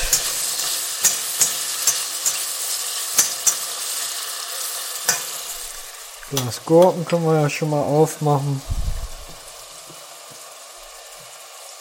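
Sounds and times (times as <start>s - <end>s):
onions frying in a pan: 0.0s - 11.7s
speech: 6.3s - 8.9s.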